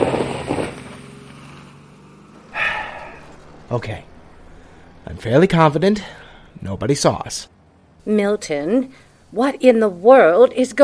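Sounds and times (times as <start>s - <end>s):
limousine low engine drone pulling away: 0.0s - 10.3s
bursts of rushing noise: 2.5s - 6.8s
speech: 3.7s - 4.1s, 5.0s - 10.8s.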